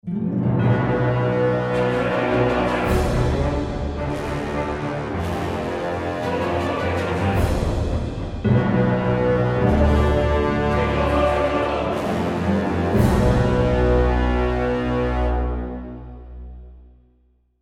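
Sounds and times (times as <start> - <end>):
action music: 0.0 - 16.9.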